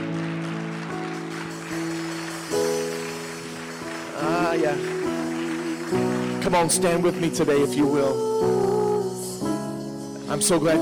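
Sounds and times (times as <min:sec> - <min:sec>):
audience hand clapping: 0:00.0 - 0:08.2
sustained organ-like chords: 0:00.0 - 0:10.8
speech: 0:05.9 - 0:08.8, 0:10.4 - 0:10.8.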